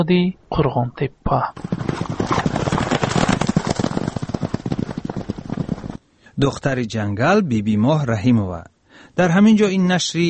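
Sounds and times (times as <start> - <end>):
speech: 0.0 - 2.4, 6.4 - 10.2
forest ranger's swift-footed horse clip-clopping: 1.6 - 6.0.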